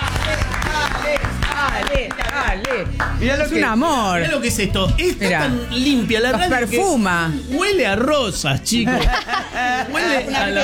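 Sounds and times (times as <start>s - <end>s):
audience applause: 0.0s - 2.9s
speech: 1.9s - 10.6s
laughter: 8.7s - 10.6s.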